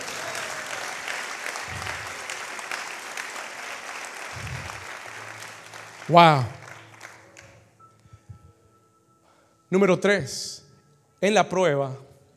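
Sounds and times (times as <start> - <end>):
audience applause: 0.0 - 7.6
speech: 6.1 - 6.6, 9.7 - 10.6, 11.2 - 12.1.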